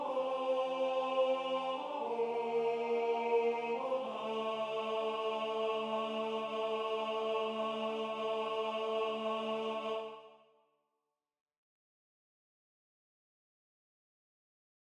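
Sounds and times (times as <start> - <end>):
tenor singing: 0.0 - 10.4.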